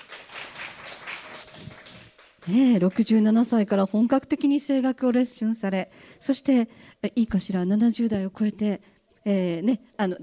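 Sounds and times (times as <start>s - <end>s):
audience applause: 0.0s - 4.1s
speech: 2.4s - 10.2s.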